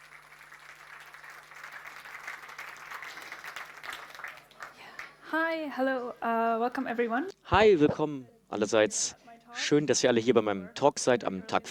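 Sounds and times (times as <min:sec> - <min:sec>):
audience applause: 0:00.0 - 0:05.2
speech: 0:05.3 - 0:11.7.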